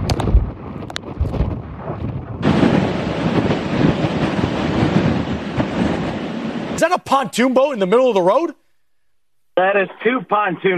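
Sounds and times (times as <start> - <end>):
hurricane wind gusts: 0.0 - 8.5
speech: 6.8 - 8.6, 9.6 - 10.7.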